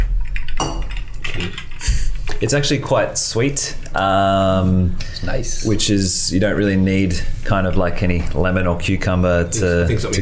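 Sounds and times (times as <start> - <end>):
gin glasses clinking in a toast: 0.6 - 2.3
speech: 2.4 - 10.2.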